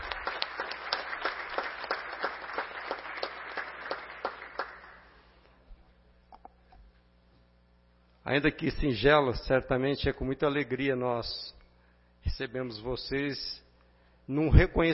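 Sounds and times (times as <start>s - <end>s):
audience applause: 0.0s - 5.1s
speech: 8.3s - 11.6s, 12.4s - 13.6s, 14.3s - 14.9s.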